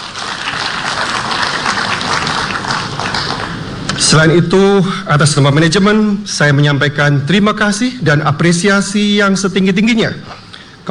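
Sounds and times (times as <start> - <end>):
audience applause at a formal corporate address: 0.0 - 6.0
speech: 4.1 - 10.9.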